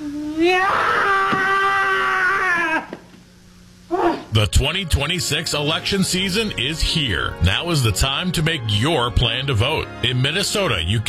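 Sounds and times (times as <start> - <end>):
bird angrily screaming: 0.4 - 2.9
speech: 4.4 - 11.0.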